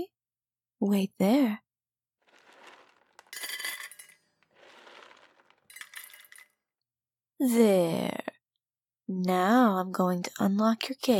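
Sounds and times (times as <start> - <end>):
speech: 0.8 - 1.6, 7.4 - 8.3, 9.1 - 11.1
food being put into a pet bowl: 2.2 - 6.5.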